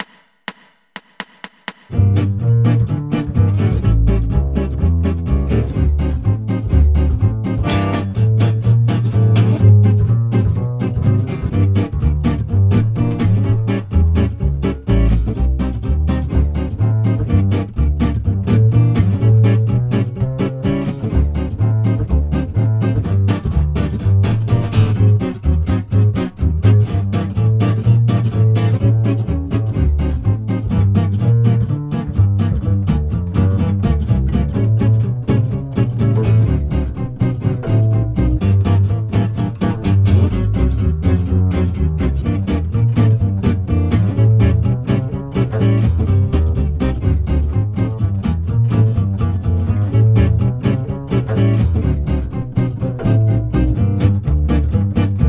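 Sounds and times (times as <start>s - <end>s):
gypsy jazz swing: 1.9s - 55.2s.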